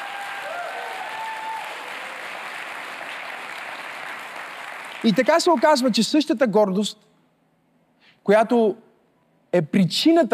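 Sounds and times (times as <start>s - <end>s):
audience applause: 0.0s - 5.8s
speech: 5.0s - 7.1s, 8.2s - 8.8s, 9.5s - 10.3s.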